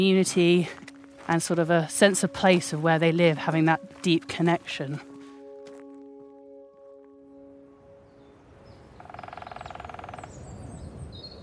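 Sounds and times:
speech: 0.0s - 5.1s
woodpecker: 9.0s - 10.4s.

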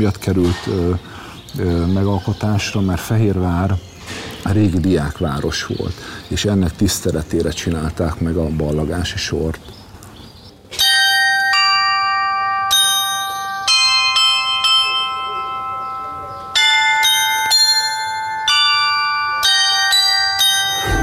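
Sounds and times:
speech: 0.0s - 9.7s
clock tower chime playing a tune on tuned bells: 10.7s - 21.0s.

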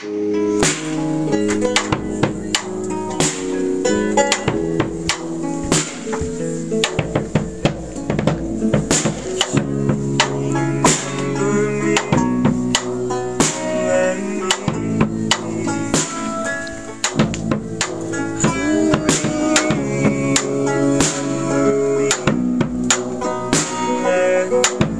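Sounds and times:
soundcheck: 0.0s - 24.9s.

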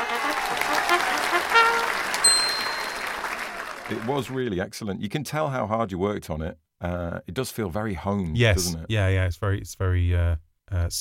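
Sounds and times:
round of applause: 0.0s - 4.4s
speech: 3.9s - 10.9s.

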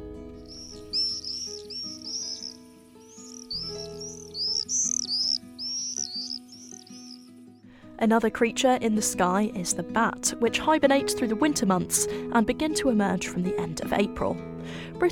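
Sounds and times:
swift calls: 0.4s - 7.5s
speech: 8.0s - 15.1s.

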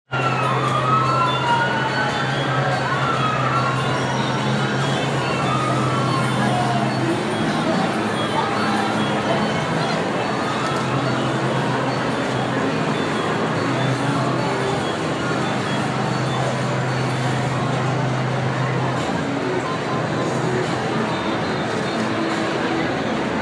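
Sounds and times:
street sounds: 0.1s - 23.4s.

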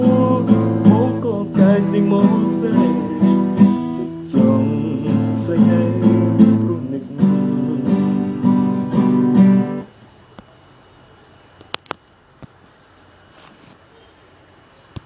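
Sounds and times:
person singing: 0.0s - 9.6s.

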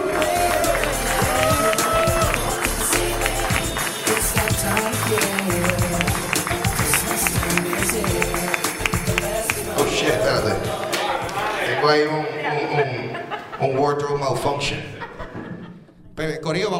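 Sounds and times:
audience applause: 0.0s - 11.8s
laughter: 9.7s - 16.2s
speech: 13.9s - 15.0s, 16.2s - 16.7s.

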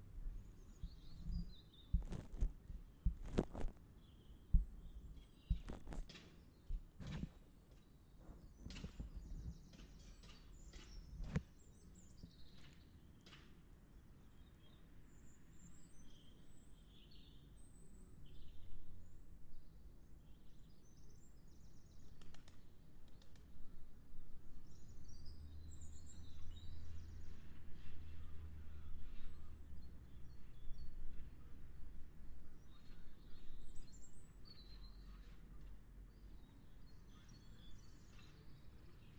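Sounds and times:
birdsong: 0.1s - 39.1s
bird wing flaps: 2.0s - 3.8s.

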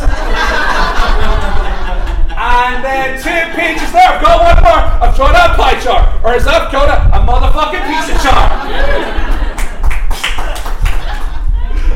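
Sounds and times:
laughter: 0.0s - 4.2s, 7.7s - 11.9s
speech: 3.5s - 9.3s
part of an audience scattered clapping: 9.3s - 11.4s.

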